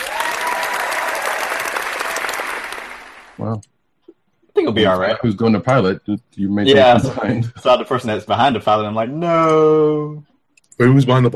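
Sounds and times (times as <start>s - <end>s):
applause sound effect: 0.0s - 3.4s
speech: 3.4s - 3.8s, 4.6s - 11.3s.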